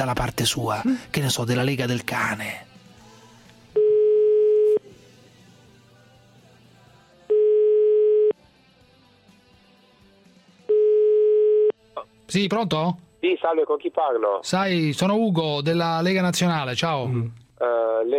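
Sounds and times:
speech: 0:00.0 - 0:02.7, 0:12.3 - 0:18.1
telephone ringback tone of a call to a mobile phone number: 0:03.8 - 0:04.8, 0:07.3 - 0:08.4, 0:10.7 - 0:11.7.

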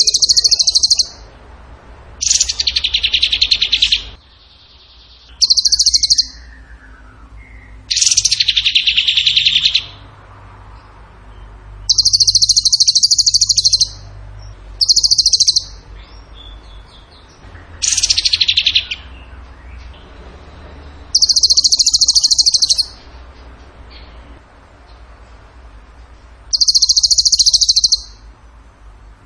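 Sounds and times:
bird song trill: 0:00.0 - 0:01.3, 0:02.2 - 0:10.1, 0:10.8 - 0:23.1, 0:26.5 - 0:28.3.

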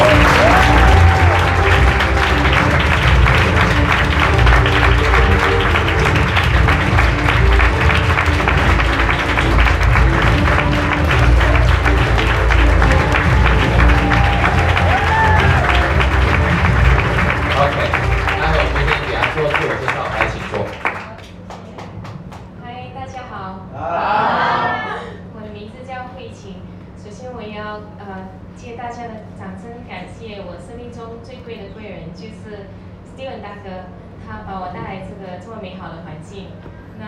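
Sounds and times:
audience applause welcoming a speaker at a nutrition versus medicine forum: 0:00.0 - 0:22.6.

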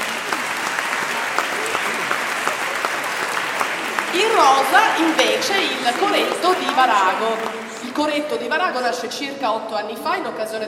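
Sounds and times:
audience applause at a choir festival greeting a choir: 0:00.0 - 0:08.4
speech: 0:04.4 - 0:10.6.

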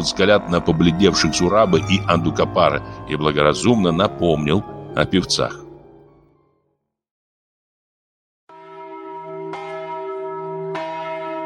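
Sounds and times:
speech: 0:00.0 - 0:05.6
Tbilisi church bells ringing at dawn: 0:00.0 - 0:06.3, 0:08.5 - 0:11.4.

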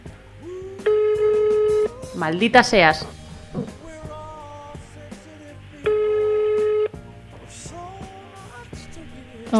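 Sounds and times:
telephone ringback tone from an unanswered call: 0:00.9 - 0:01.9, 0:05.9 - 0:07.0
speech: 0:02.2 - 0:03.7.

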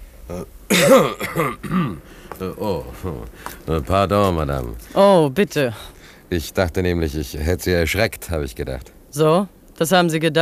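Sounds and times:
cough: 0:00.3 - 0:02.0
speech: 0:00.3 - 0:10.3.

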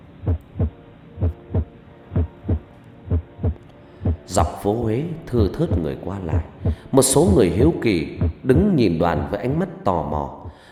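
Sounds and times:
pounding heartbeat sound effect: 0:00.2 - 0:04.3, 0:06.6 - 0:07.4, 0:08.2 - 0:08.7
speech: 0:04.3 - 0:10.6.

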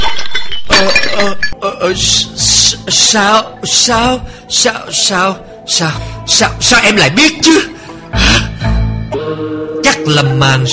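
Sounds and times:
beer bottle falling and shattering on floor: 0:00.0 - 0:01.6
speech: 0:00.8 - 0:08.5, 0:09.2 - 0:10.7.

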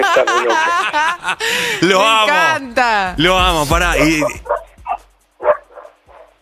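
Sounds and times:
dogs barking: 0:00.0 - 0:01.0, 0:04.0 - 0:06.4
laughter: 0:00.0 - 0:02.6, 0:03.2 - 0:04.4
speech: 0:00.2 - 0:04.6.

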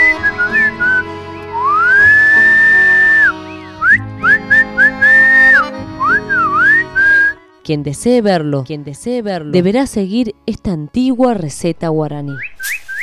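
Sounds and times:
deafening whistle: 0:00.0 - 0:07.4, 0:12.4 - 0:13.0
speech: 0:07.7 - 0:12.8.

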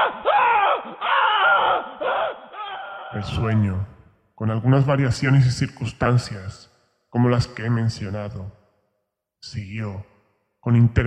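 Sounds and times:
person screaming on waking from a nightmare: 0:00.0 - 0:03.4
speech: 0:03.2 - 0:08.6, 0:09.4 - 0:11.0.

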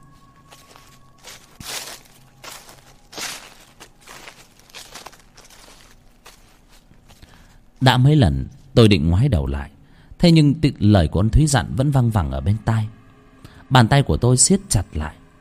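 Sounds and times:
footsteps crunching on dry leaves: 0:00.0 - 0:07.8
speech: 0:07.8 - 0:13.0, 0:13.7 - 0:15.2.

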